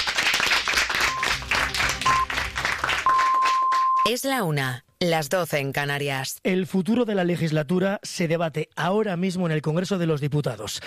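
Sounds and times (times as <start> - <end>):
applause: 0.0 - 4.2
speech: 4.0 - 10.8.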